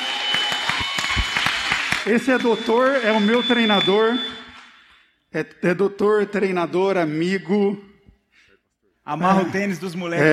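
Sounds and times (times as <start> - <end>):
audience applauding: 0.0 - 4.8
speech: 2.1 - 4.4, 5.3 - 7.9, 9.0 - 10.3.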